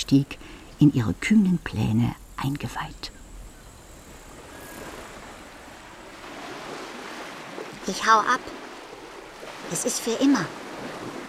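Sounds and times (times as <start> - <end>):
speech: 0.0 - 3.2, 7.9 - 8.6, 9.7 - 10.6
ocean waves breaking: 3.2 - 11.2.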